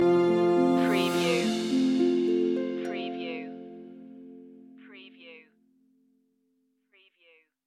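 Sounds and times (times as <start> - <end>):
orchestral loop ending: 0.0 - 5.0.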